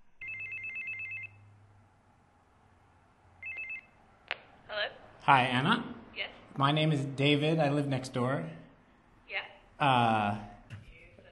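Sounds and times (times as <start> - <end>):
electronic doorbell ringing: 0.2 - 1.4, 3.4 - 4.0
speech: 5.3 - 8.6, 9.8 - 10.5.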